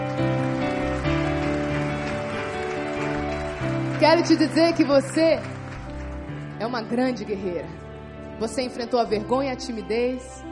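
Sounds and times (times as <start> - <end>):
audience applause: 0.0 - 6.6
speech: 4.0 - 5.6, 6.6 - 7.8, 8.4 - 10.5.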